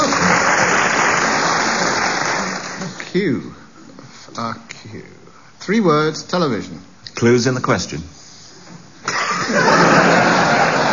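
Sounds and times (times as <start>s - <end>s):
applause: 0.0s - 3.0s
speech: 5.6s - 8.2s
laughter: 9.1s - 10.9s.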